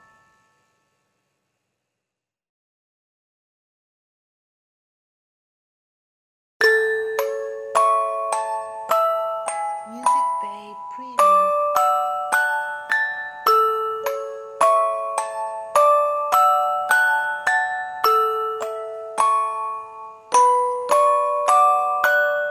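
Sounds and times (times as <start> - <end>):
baby sleep music box lullaby: 0.0 - 1.3, 6.6 - 22.4.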